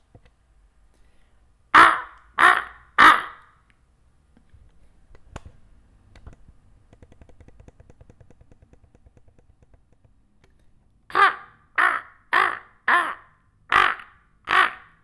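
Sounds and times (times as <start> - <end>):
crow cawing: 1.8 - 3.5, 11.1 - 15.0.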